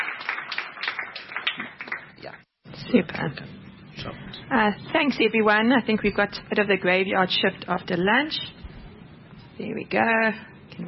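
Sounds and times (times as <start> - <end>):
audience applause welcoming two speakers at a policy talk: 0.0 - 2.2
speech: 2.9 - 8.6, 9.6 - 10.8.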